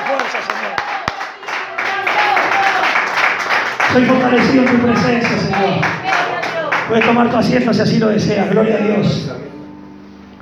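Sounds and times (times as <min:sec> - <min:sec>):
congregation applause in a church service: 0:00.0 - 0:08.5
speech: 0:03.9 - 0:06.0, 0:06.9 - 0:09.4.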